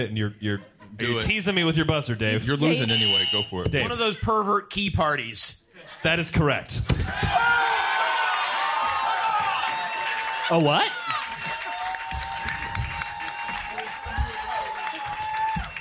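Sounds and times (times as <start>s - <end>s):
speech: 0.0s - 7.6s, 10.5s - 11.2s
audience applause: 7.1s - 15.7s.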